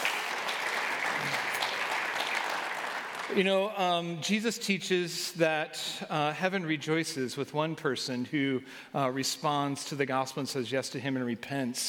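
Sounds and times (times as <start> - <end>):
audience applause: 0.0 - 3.4
speech: 3.3 - 11.8.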